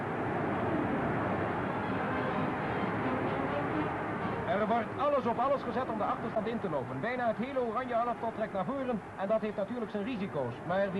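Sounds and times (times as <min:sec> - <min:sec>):
stadium crowd cheering on football team: 0:00.0 - 0:05.4
speech: 0:04.7 - 0:10.9.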